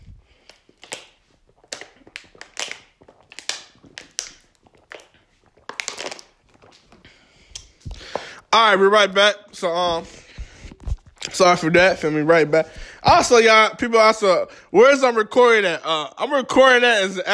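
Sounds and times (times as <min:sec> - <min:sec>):
person drinking water: 0:00.0 - 0:08.5, 0:10.0 - 0:11.4, 0:12.6 - 0:13.0
speech: 0:08.6 - 0:10.2, 0:11.4 - 0:17.3.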